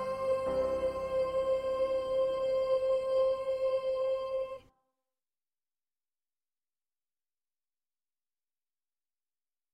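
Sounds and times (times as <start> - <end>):
second soprano singing: 0.0 - 4.7.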